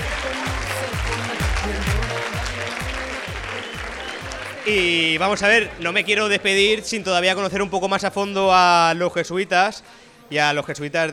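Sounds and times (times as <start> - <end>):
applause: 0.0 - 5.4
speech: 4.7 - 11.1.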